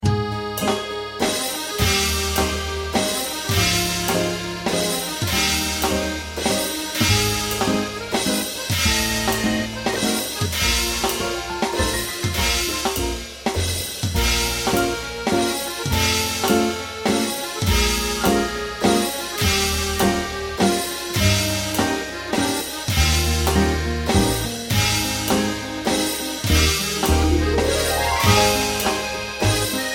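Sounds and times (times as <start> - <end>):
3/4 waltz: 0.0 - 13.4, 14.2 - 29.9.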